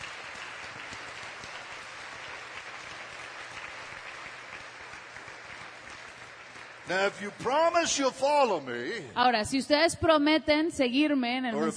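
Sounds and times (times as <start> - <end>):
crowd clapping: 0.0 - 8.2
speech: 6.9 - 11.7.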